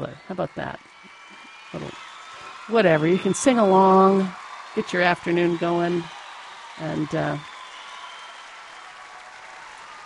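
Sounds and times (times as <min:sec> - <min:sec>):
speech: 0:00.0 - 0:00.9, 0:02.7 - 0:06.2, 0:06.8 - 0:07.5
live concert audience applause: 0:00.0 - 0:10.0.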